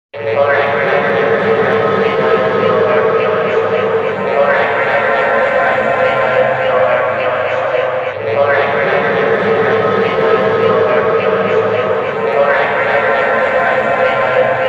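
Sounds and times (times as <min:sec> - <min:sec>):
futuristic sound: 0:00.2 - 0:14.6.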